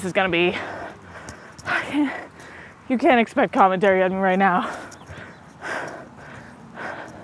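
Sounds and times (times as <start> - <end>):
speech: 0.0 - 0.8, 1.9 - 2.3, 2.9 - 4.8
heavy breathing into a mic: 0.4 - 2.9, 4.6 - 7.2.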